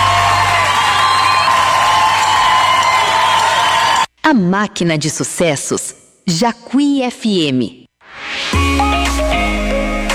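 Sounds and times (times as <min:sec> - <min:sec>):
applause in Miami: 0:00.0 - 0:04.1
speech: 0:04.3 - 0:09.6.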